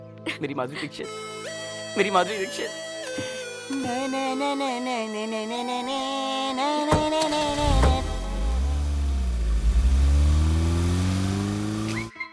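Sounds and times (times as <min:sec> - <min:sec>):
speech: 0:00.2 - 0:07.9
car engine revving: 0:06.9 - 0:12.1.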